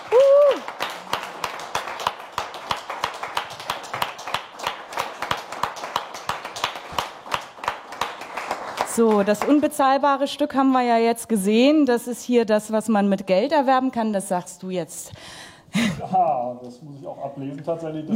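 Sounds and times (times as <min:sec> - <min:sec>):
high vocal whoop: 0:00.0 - 0:00.7
audience applause: 0:00.0 - 0:09.7
speech: 0:09.0 - 0:18.1.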